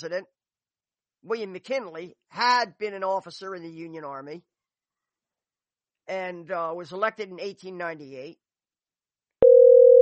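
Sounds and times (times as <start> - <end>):
speech: 0.0 - 0.4, 1.2 - 4.5, 6.1 - 8.4
electronic telephone tone of an incoming call on a radio show: 9.4 - 10.0.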